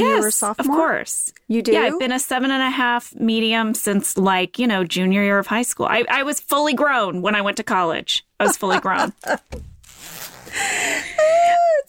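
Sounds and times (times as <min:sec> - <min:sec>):
speech: 0:00.0 - 0:11.8
laughter: 0:08.4 - 0:09.5
hoodie zipper being unzipped: 0:09.2 - 0:10.6.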